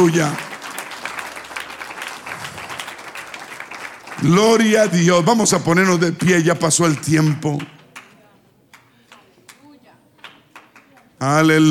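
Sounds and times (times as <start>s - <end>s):
speech: 0.0s - 0.5s, 4.2s - 7.8s, 11.2s - 11.6s
audience applause: 0.0s - 5.6s.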